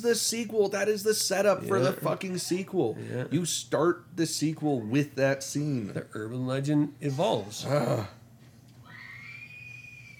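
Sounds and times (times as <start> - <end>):
speech: 0.0 - 8.2
woman screaming in horror film: 8.8 - 10.1.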